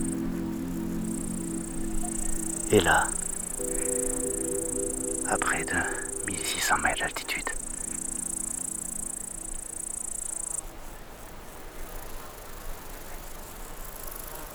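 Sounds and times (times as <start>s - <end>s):
grasshoppers chirping in an alpine meadow at about 1600 metres: 0.0s - 10.6s
soft hiss: 0.0s - 10.6s
speech: 2.7s - 3.8s, 5.3s - 7.5s.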